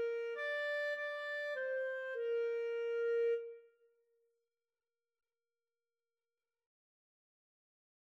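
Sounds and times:
saxophone: 0.0s - 3.7s
clarinet: 0.0s - 3.9s.

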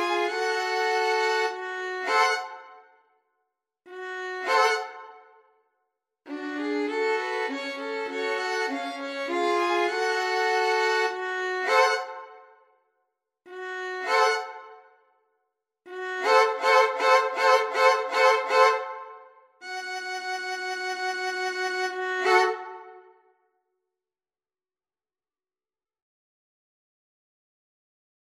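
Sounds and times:
violin trio: 0.0s - 2.6s, 3.9s - 5.1s, 6.3s - 12.4s, 13.5s - 14.7s, 15.9s - 23.0s.

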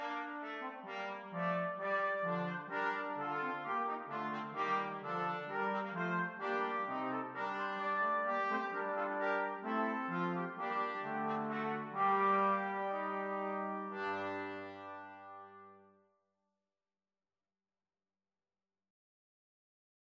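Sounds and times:
brass quartet playing canzona: 0.0s - 15.8s.

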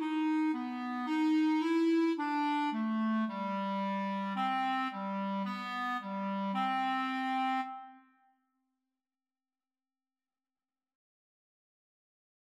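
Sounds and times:
clarinet duet: 0.0s - 8.1s.

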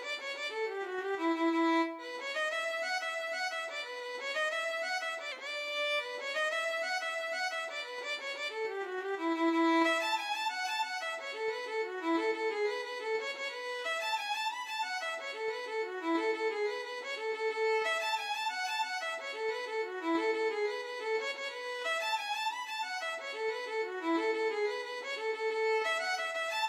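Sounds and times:
violin playing Irish jig medley: 0.0s - 26.6s.

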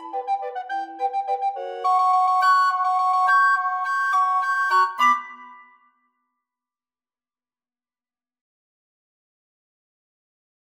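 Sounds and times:
recorder quartet playing: 0.0s - 5.4s.

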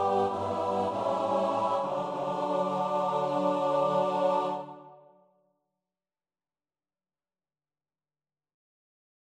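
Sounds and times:
choir singing: 0.0s - 5.2s.

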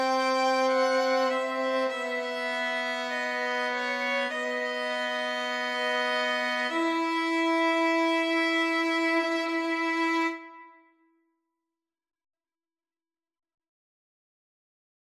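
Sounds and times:
violin trio playing an aequale: 0.0s - 10.7s.

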